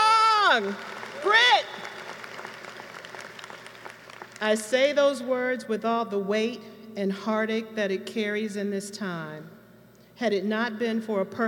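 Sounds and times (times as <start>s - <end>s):
crowd applause: 0.0s - 4.4s
speech: 0.5s - 1.9s, 4.4s - 9.6s, 10.2s - 11.4s.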